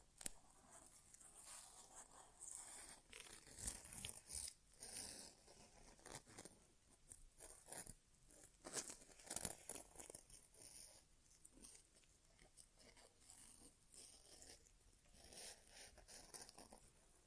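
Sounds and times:
ASMR inner ear exam crackly scratching and rustling: 0.0 - 17.2.

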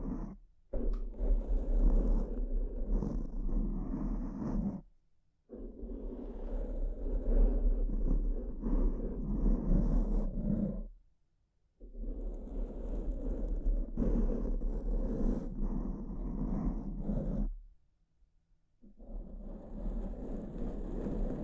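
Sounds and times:
brain scratch rough rubbing: 1.2 - 4.8, 5.7 - 10.9, 12.4 - 17.5, 19.2 - 21.4.

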